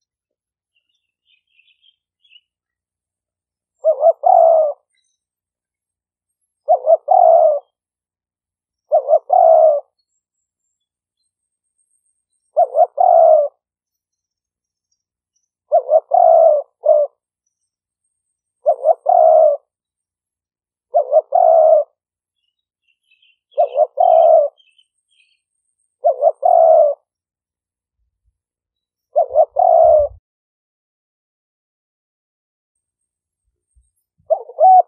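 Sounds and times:
Spotted dove cooing: 0:03.8 - 0:04.9, 0:06.6 - 0:07.8, 0:08.9 - 0:10.0, 0:12.5 - 0:13.6, 0:15.7 - 0:17.2, 0:18.6 - 0:19.8, 0:20.9 - 0:22.0, 0:23.2 - 0:25.4, 0:26.0 - 0:27.1, 0:29.1 - 0:30.2, 0:34.2 - 0:34.8.

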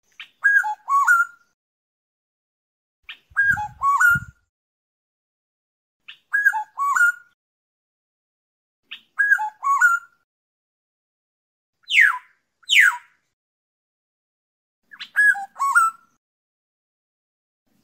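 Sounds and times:
black-naped oriole fluting whistles: 0:00.4 - 0:01.4, 0:03.1 - 0:04.4, 0:06.1 - 0:07.4, 0:08.9 - 0:10.2, 0:11.8 - 0:13.0, 0:14.9 - 0:16.1.

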